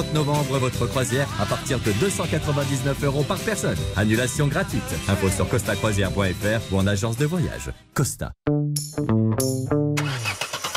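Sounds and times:
speech: 0:00.0 - 0:09.7
car engine cranking in the cold, failing to start: 0:10.0 - 0:10.7.

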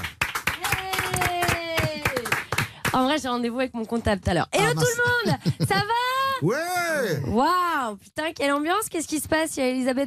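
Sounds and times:
studio audience applause: 0:00.0 - 0:02.8
speech: 0:03.2 - 0:10.0
laughter: 0:04.6 - 0:06.8.

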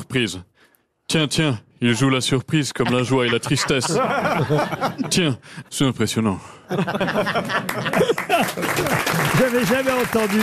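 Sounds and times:
speech: 0:00.1 - 0:10.4
laughter: 0:02.7 - 0:05.6, 0:06.6 - 0:09.7
audience applause: 0:07.4 - 0:10.4.

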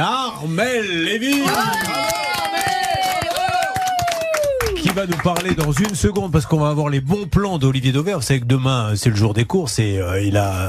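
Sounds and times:
speech: 0:00.0 - 0:02.3, 0:05.0 - 0:10.6
audience applause: 0:01.3 - 0:06.4.

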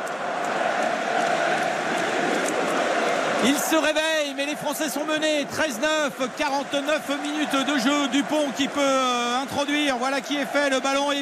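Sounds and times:
rugby stadium crowd cheering at a France New Zealand match: 0:00.0 - 0:11.1
speech: 0:03.4 - 0:11.1.

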